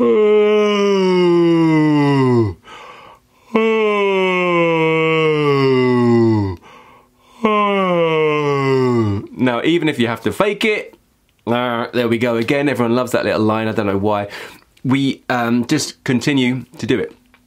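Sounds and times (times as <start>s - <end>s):
demonstrated yawn: 0.0s - 9.4s
speech: 9.6s - 17.2s.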